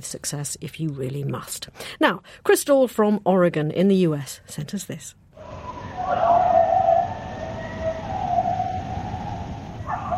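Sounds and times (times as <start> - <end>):
speech: 0.0 - 6.2
pack of coyotes howling in evening: 5.4 - 10.1.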